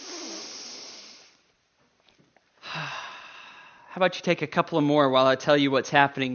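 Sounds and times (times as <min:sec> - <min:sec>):
group of people taking deep breaths in the nose, out the mouth: 0:00.0 - 0:01.4, 0:02.6 - 0:03.9
speech: 0:04.0 - 0:06.3.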